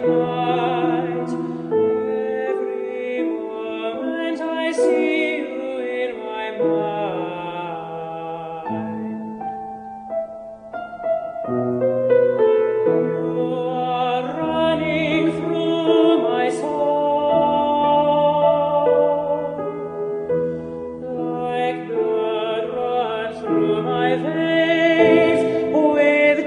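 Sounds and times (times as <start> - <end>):
piano in E minor: 0.0 - 26.4.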